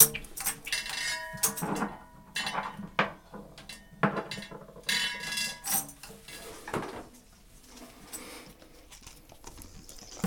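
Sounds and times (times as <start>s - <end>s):
clang: 0.0s - 2.8s, 3.7s - 6.0s.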